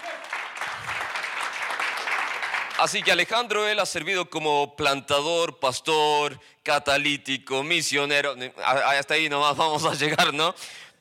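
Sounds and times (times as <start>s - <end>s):
crowd applause: 0.0s - 3.2s
speech: 2.8s - 10.9s.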